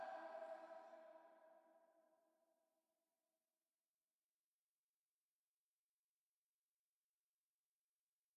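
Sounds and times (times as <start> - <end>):
vocal loop: 0.0 - 1.0.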